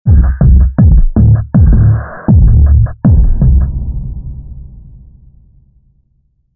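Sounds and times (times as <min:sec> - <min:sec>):
heartbeat: 0:00.1 - 0:04.4.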